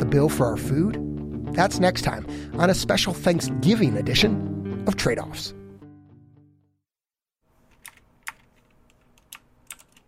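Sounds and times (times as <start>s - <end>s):
speech: 0.1s - 5.6s
computer clicks during a telemedicine visit: 7.7s - 10.0s.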